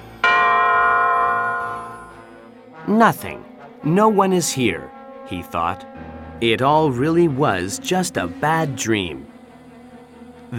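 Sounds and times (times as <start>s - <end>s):
clock striking one: 0.0s - 2.5s
speech: 2.9s - 9.3s.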